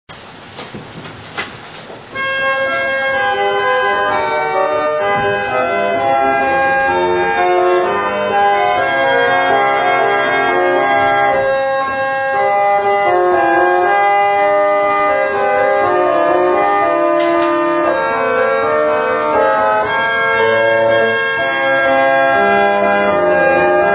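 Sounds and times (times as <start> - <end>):
organ: 2.1 - 23.9.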